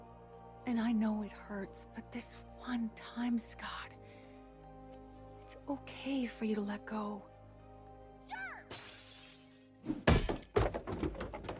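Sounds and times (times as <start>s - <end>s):
speech: 0.7s - 4.0s, 5.6s - 7.3s, 9.8s - 10.1s
framed picture glass shattering: 8.7s - 11.0s
clattering knocks: 10.0s - 11.5s.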